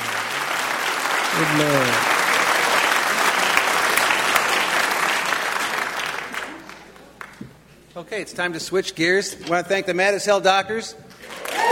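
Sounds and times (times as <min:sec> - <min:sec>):
audience applause: 0:00.0 - 0:06.6
speech: 0:01.4 - 0:02.1, 0:08.0 - 0:11.0.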